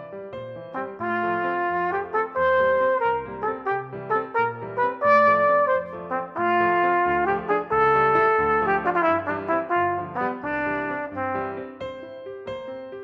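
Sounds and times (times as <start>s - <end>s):
full trumpet scherzo: 0.7s - 12.0s.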